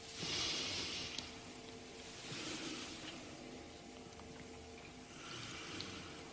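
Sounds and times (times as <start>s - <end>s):
patient breathing slow deep breaths during medical examination: 0.0s - 3.6s, 5.1s - 6.3s
faint steady hum: 0.0s - 6.3s.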